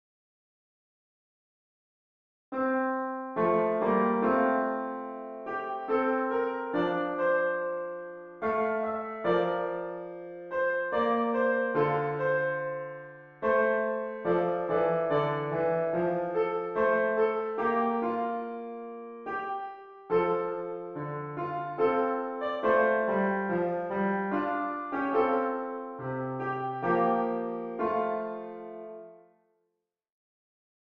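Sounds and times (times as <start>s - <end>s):
piano: 2.6s - 29.5s.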